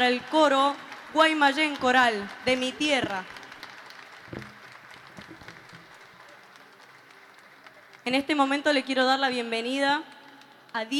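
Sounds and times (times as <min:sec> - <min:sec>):
speech: 0:00.0 - 0:03.4, 0:08.0 - 0:10.2, 0:10.8 - 0:10.9
faint audience applause for three choirs at a choral mass performance: 0:00.0 - 0:08.5.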